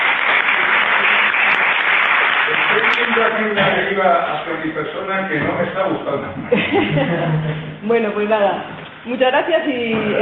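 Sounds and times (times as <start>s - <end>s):
audience applauding a speaker at the end of a talk: 0.0s - 4.5s
speech: 3.0s - 10.2s
laughter: 5.3s - 7.8s.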